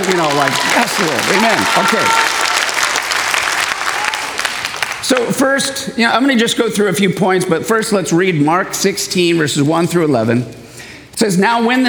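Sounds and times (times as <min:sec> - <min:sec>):
audience clapping: 0:00.0 - 0:05.5
speech: 0:00.1 - 0:02.4, 0:05.0 - 0:11.8.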